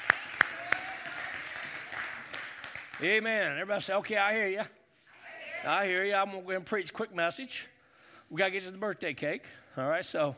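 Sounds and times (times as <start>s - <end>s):
audience applause: 0.0s - 3.3s
speech: 3.0s - 4.8s, 5.6s - 7.7s, 8.3s - 10.3s.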